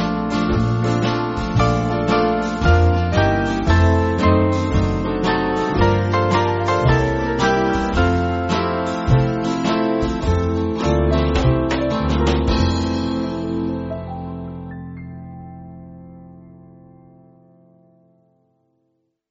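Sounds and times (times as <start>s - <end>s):
band backing music: 0.0s - 14.7s.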